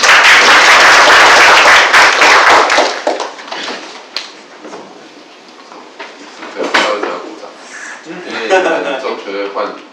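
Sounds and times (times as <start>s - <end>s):
audience applause: 0.0s - 3.7s
laughter: 8.1s - 9.2s.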